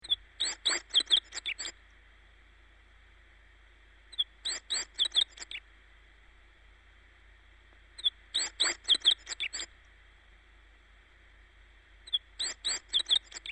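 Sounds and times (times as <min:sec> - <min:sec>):
bird: 0:00.0 - 0:01.9, 0:04.1 - 0:05.7, 0:08.0 - 0:09.7, 0:12.0 - 0:13.5.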